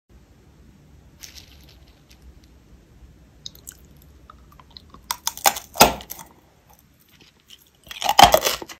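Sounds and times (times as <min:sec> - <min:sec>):
eating candy: 0:03.4 - 0:08.7.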